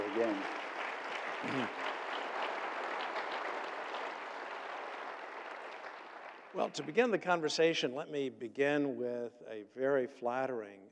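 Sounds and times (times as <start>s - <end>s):
audience applause welcoming speaker Os Guinness at a talk on religious freedom: 0.0s - 7.1s
speech: 0.2s - 0.6s, 1.4s - 1.9s, 6.6s - 10.9s.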